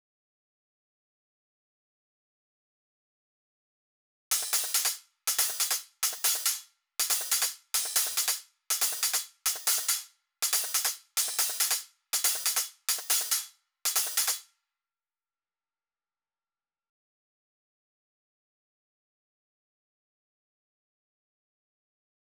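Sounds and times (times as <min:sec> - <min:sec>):
140 BPM breakbeat hi-hat loop: 0:04.3 - 0:14.4.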